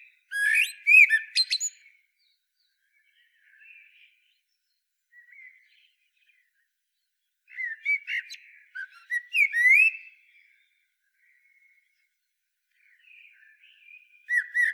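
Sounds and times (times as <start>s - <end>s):
common blackbird singing: 0.0s - 4.2s, 7.5s - 12.1s, 12.7s - 14.7s.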